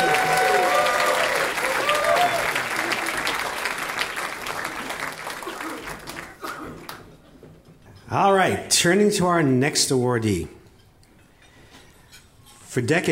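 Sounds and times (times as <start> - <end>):
audience applause at a folk music community awards event: 0.0 - 7.1
speech: 8.5 - 10.6, 12.7 - 13.0.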